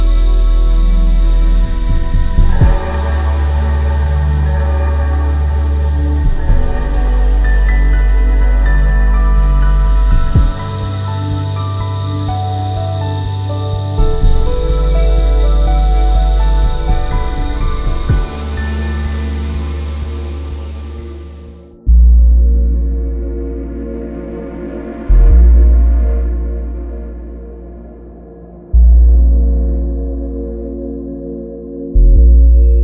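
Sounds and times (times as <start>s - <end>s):
ambient waves: 0.0s - 32.8s.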